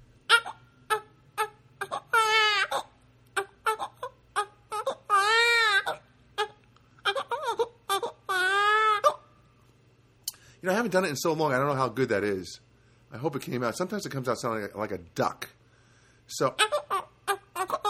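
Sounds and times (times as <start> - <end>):
person imitating a crying baby: 0.3 - 9.3, 16.6 - 17.8
speech: 10.6 - 15.5, 16.3 - 16.8.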